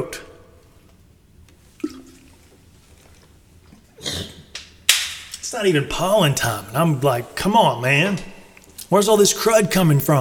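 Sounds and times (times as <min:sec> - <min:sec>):
person sipping a drink: 0:01.6 - 0:04.4
speech: 0:05.6 - 0:08.3, 0:08.9 - 0:10.2.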